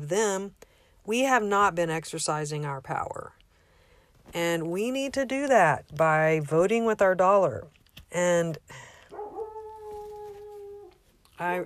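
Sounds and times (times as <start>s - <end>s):
speech: 0.1s - 3.4s, 4.3s - 8.9s, 11.4s - 11.6s
dog howling: 9.1s - 11.1s.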